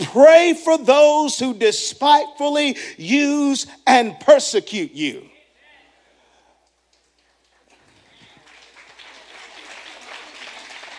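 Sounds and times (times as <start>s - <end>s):
speech: 0.1s - 5.3s
audience clapping: 6.6s - 10.9s.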